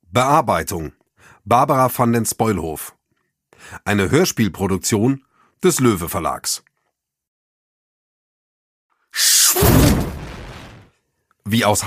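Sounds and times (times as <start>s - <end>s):
speech: 0.2s - 3.0s, 3.6s - 6.7s, 9.2s - 10.2s, 11.4s - 11.8s
computer monitor exploding: 9.5s - 10.9s.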